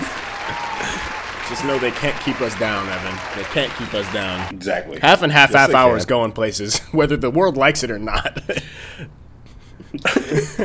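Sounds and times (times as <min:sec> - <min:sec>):
round of applause: 0:00.0 - 0:04.5
speech: 0:01.5 - 0:09.2, 0:10.0 - 0:10.6.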